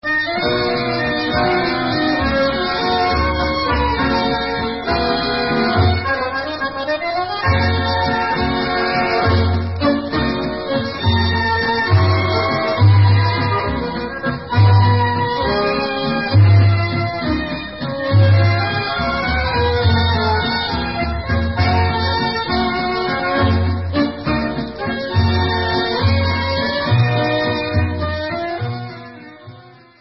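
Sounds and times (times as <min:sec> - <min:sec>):
waltz music: 0:00.0 - 0:29.9.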